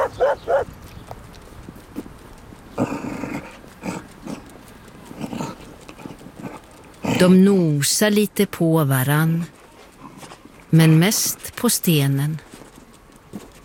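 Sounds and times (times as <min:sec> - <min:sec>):
dog barking: 0:00.0 - 0:00.7
dog growling: 0:00.0 - 0:00.7, 0:02.7 - 0:07.4
speech: 0:00.2 - 0:00.8, 0:07.2 - 0:09.6, 0:10.7 - 0:12.4.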